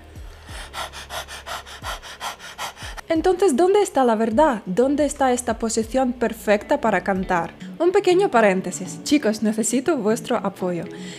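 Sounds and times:
person imitating dog panting with tongue out: 0:00.4 - 0:03.0
speech: 0:03.1 - 0:11.1.

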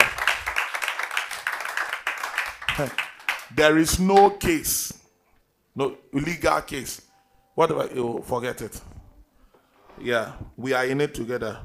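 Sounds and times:
audience clapping: 0:00.0 - 0:04.4
speech: 0:02.8 - 0:05.0, 0:05.8 - 0:08.9, 0:10.0 - 0:11.6.

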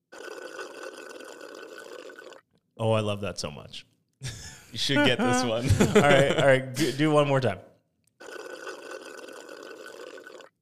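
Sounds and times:
sucking the last liquid through a straw at the bottom of a cup: 0:00.0 - 0:02.7, 0:08.0 - 0:10.6
speech: 0:02.8 - 0:07.7
laughter: 0:04.2 - 0:07.1.

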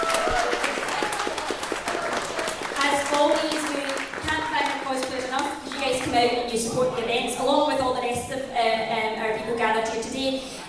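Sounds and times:
audience applause: 0:00.0 - 0:05.9
speech: 0:06.2 - 0:10.6.

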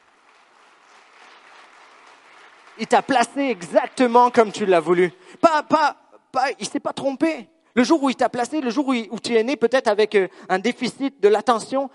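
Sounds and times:
church congregation applause during a sermon: 0:00.0 - 0:05.2
speech: 0:02.8 - 0:11.9.

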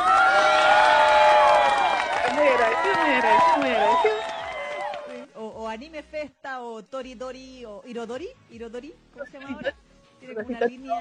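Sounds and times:
crowd clapping: 0:00.0 - 0:05.3
speech: 0:05.8 - 0:10.9.

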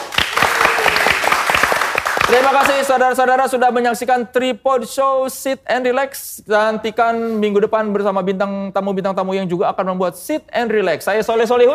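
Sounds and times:
audience applause: 0:00.0 - 0:02.9
speech: 0:02.3 - 0:11.7.

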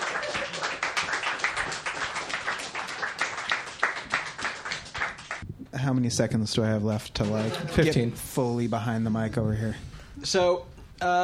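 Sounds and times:
audience clapping: 0:00.0 - 0:05.5
speech: 0:05.8 - 0:11.2.

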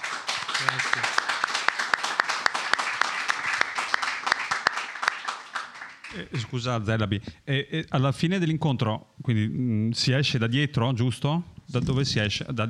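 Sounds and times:
audience applause: 0:00.0 - 0:06.4
speech: 0:00.6 - 0:01.2, 0:06.1 - 0:12.6.

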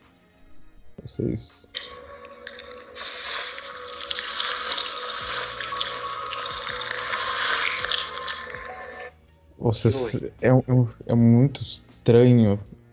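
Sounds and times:
speech: 0:01.1 - 0:02.0, 0:09.6 - 0:12.8
horror game wet hissing and crackling: 0:02.1 - 0:08.6.

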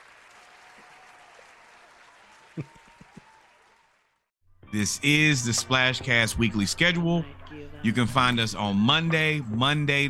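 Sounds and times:
crowd round of applause: 0:00.0 - 0:04.3
speech: 0:02.6 - 0:02.8, 0:04.7 - 0:10.0.

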